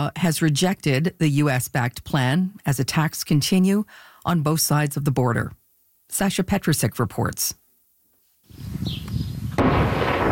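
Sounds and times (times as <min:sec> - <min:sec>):
speech: 0:00.0 - 0:07.6
loud blast: 0:09.5 - 0:10.3
shelling and gunfire from fighting between Israeli forces and Hezbollah in southern Lebanon: 0:09.6 - 0:10.3.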